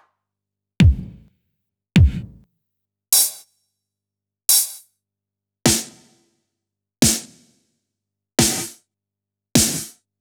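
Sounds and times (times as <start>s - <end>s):
electro drum kit: 0.8s - 1.3s, 2.0s - 2.4s, 9.6s - 9.9s.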